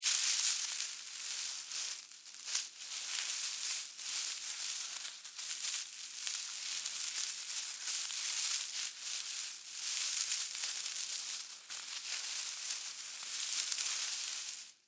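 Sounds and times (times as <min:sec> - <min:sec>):
animal critter moving through grass foliage: 0:00.0 - 0:14.8.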